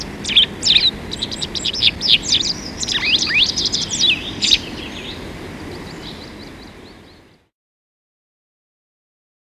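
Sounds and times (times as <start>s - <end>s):
Pied Wagtail birdsong: 0.0s - 7.4s.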